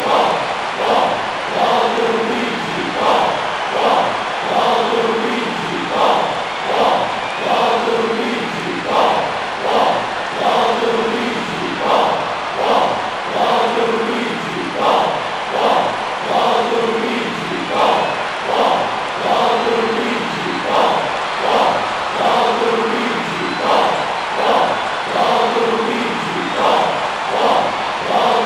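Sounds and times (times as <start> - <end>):
crowd singing: 0.0 - 28.4.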